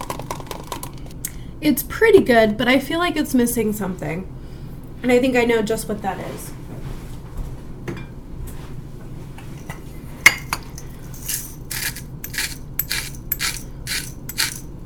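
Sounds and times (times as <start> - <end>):
speech: 1.6 - 4.4, 5.0 - 6.6
spoon tapping and clinking against a smoothie container: 9.6 - 14.8
spoon scraping while stirring a thick smoothie in a container: 10.3 - 14.8.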